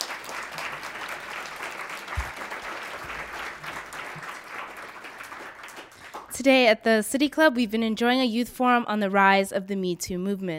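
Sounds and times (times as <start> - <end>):
room full of people applauding panelists: 0.0 - 6.3
speech: 6.4 - 10.5.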